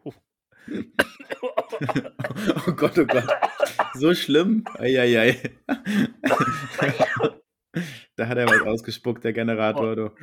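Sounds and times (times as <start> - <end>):
speech: 0.0 - 1.0, 1.8 - 7.4, 8.2 - 10.2
person coughing after swallowing the wrong way: 1.0 - 4.9, 6.2 - 7.4, 8.5 - 8.8
laughter: 1.4 - 3.8, 4.7 - 7.2.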